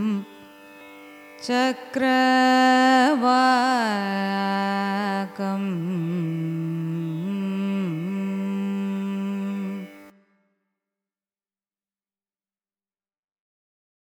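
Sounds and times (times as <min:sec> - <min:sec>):
raga chakravakam signature phrase in carnatic music: 0:00.0 - 0:10.4.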